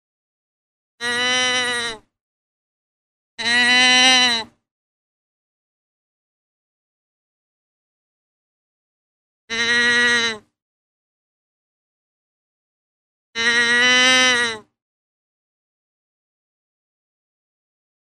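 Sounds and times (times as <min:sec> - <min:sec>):
deer bleating: 0:01.0 - 0:02.0, 0:03.4 - 0:04.5, 0:09.5 - 0:10.5, 0:13.4 - 0:14.6.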